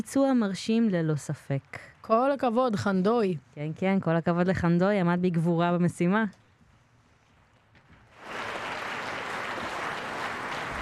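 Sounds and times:
speech: 0.0s - 6.4s
concert audience applause: 8.2s - 10.7s.

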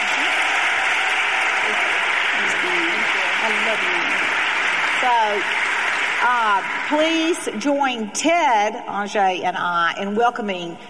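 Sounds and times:
applause for a guest: 0.0s - 7.9s
speech: 3.7s - 4.3s, 5.0s - 5.6s, 6.2s - 10.8s.

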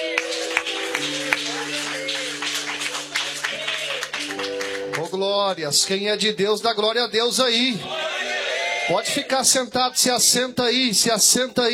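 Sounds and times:
people clapping: 0.0s - 6.0s
speech: 5.1s - 8.1s, 8.9s - 11.7s.

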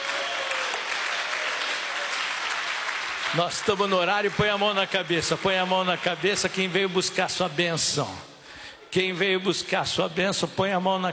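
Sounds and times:
audience clapping hands: 0.0s - 7.3s
speech: 3.3s - 8.3s, 8.9s - 11.1s.

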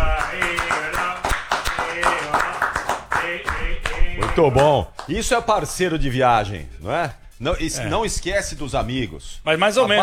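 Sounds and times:
round of applause: 0.0s - 5.2s
speech: 4.4s - 10.0s.

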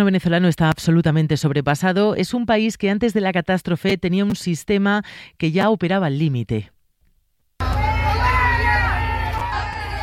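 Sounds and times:
speech: 0.0s - 6.7s
large crowd booing and jeering: 7.6s - 10.0s.

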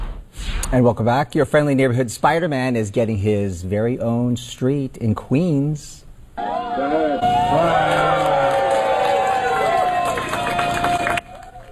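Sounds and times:
speech: 0.7s - 8.2s
crowd cheering at the Spider-Man Way unveiling in Forest Hills, Queens: 6.4s - 11.6s.

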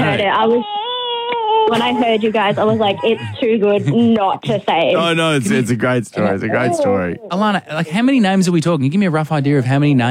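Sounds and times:
laughter: 0.0s - 0.6s, 1.7s - 7.1s
young child crying: 0.0s - 4.3s, 6.4s - 7.3s
speech: 0.3s - 0.8s, 1.7s - 10.0s.

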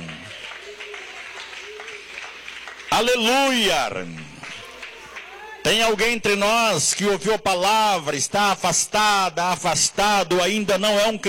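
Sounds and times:
audience clapping hands: 0.0s - 7.2s
speech: 3.0s - 4.2s, 5.7s - 11.2s.

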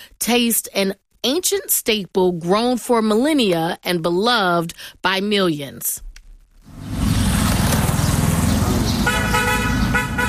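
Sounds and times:
speech: 0.2s - 6.1s
busy street traffic rumble in downtown Cairo: 6.6s - 10.2s
car horn honking: 9.0s - 10.2s.

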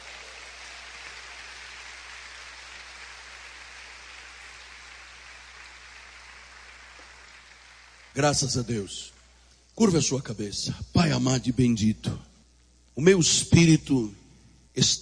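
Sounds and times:
audience applause: 0.0s - 8.6s
speech: 8.2s - 9.1s, 9.8s - 12.3s, 13.0s - 14.2s, 14.8s - 14.9s.

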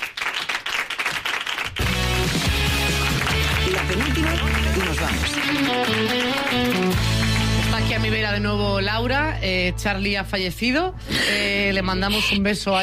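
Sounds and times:
audience applause: 0.0s - 8.2s
speech: 3.9s - 7.1s, 7.8s - 12.8s.

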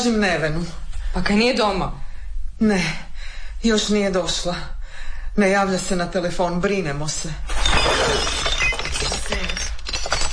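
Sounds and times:
speech: 0.0s - 2.0s, 2.6s - 4.8s, 5.4s - 8.3s
drinking glasses shattering: 7.5s - 10.3s.

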